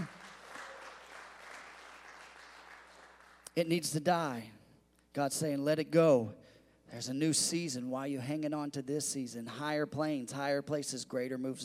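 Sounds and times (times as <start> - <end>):
audience clapping hands: 0.0 - 3.6
speech: 3.6 - 4.6, 5.2 - 11.6.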